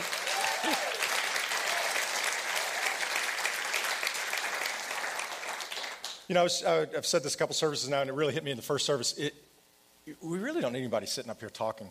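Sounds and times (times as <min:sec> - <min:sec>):
audience applauding the worship band: 0:00.0 - 0:06.3
speech: 0:06.3 - 0:09.5, 0:10.1 - 0:11.9.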